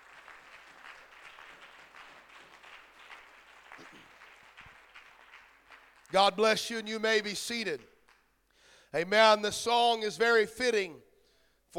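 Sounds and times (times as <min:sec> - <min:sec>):
audience clapping hands: 0:00.0 - 0:07.3, 0:08.0 - 0:08.4
speech: 0:06.1 - 0:07.9, 0:08.9 - 0:11.1.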